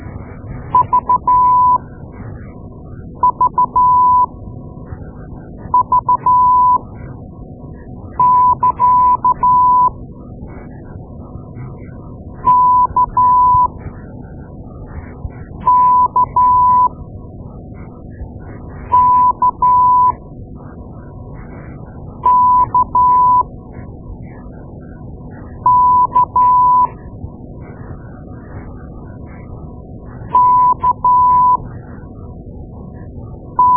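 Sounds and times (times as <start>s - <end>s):
morse code beeps: 0.7s - 1.8s, 3.2s - 4.3s, 5.7s - 6.8s, 8.2s - 9.9s, 12.4s - 13.7s, 15.6s - 16.9s, 18.9s - 20.2s, 22.2s - 23.4s, 25.7s - 26.9s, 30.3s - 31.6s, 33.6s - 33.7s.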